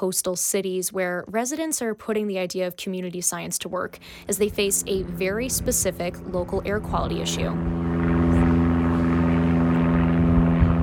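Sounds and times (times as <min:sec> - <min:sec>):
speech: 0:00.0 - 0:08.0
plane flying over East Haven near Tweed New Haven Airport: 0:03.6 - 0:10.8.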